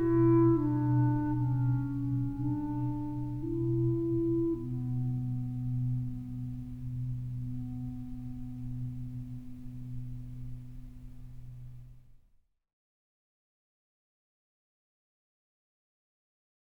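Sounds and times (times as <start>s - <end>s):
clarinet: 0.0s - 11.1s.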